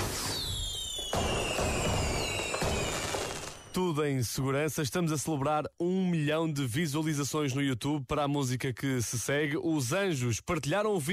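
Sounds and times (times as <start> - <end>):
fireworks: 0.0 - 3.8
speech: 3.8 - 11.1.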